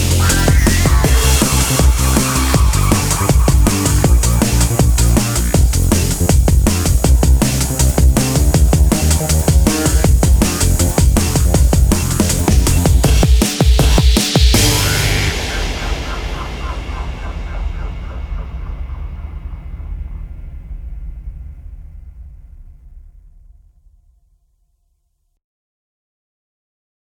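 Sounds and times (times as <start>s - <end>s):
instrumental beat: 0.0s - 18.0s.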